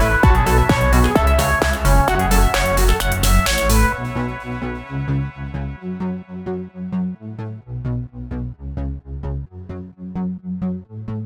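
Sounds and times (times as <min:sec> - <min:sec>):
looped music: 0:00.0 - 0:07.1.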